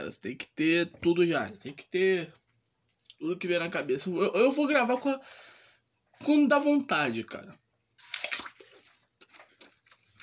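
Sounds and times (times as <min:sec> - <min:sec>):
speech: 0:00.1 - 0:02.4, 0:03.2 - 0:05.6, 0:06.2 - 0:07.6
crunchy bites and chewing of a fresh apple: 0:08.0 - 0:10.2.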